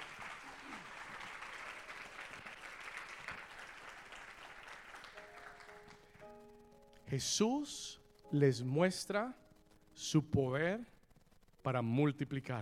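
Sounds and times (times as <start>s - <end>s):
audience applause: 0.0s - 6.2s
speech: 7.1s - 9.4s, 10.0s - 11.0s, 11.6s - 12.6s.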